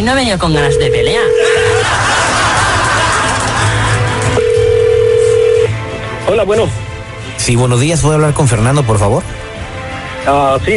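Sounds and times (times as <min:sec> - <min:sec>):
speech: 0:00.0 - 0:02.1, 0:06.3 - 0:06.8, 0:07.4 - 0:09.4, 0:10.2 - 0:10.7
telephone line tone of a call being placed: 0:00.6 - 0:01.9, 0:04.4 - 0:05.7
laughter: 0:01.4 - 0:04.4.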